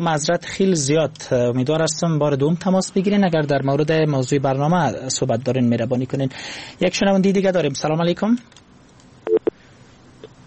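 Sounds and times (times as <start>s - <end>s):
speech: 0.0s - 8.6s
telephone disconnected line beeps: 9.3s - 9.5s.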